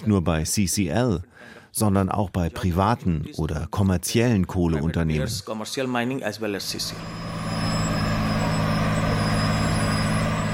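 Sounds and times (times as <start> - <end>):
speech: 0.0 - 7.4
German-made surface miner crushing coal while driving: 6.6 - 10.5.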